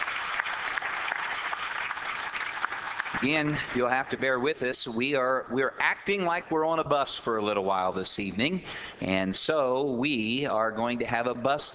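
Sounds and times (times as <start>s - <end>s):
audience applause for visitors: 0.0s - 3.8s
speech: 3.2s - 11.7s.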